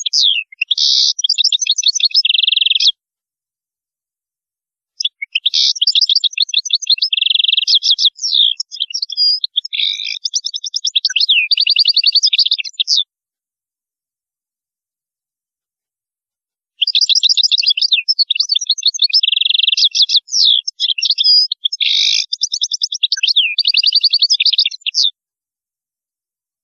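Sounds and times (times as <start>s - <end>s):
European goldfinch song: 0.0s - 3.0s, 5.0s - 13.1s, 16.8s - 25.2s.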